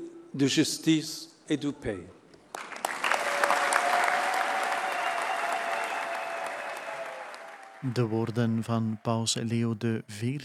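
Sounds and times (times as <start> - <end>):
speech: 0.4 - 2.2, 7.8 - 10.4
audience applause after papal speech: 2.5 - 9.7.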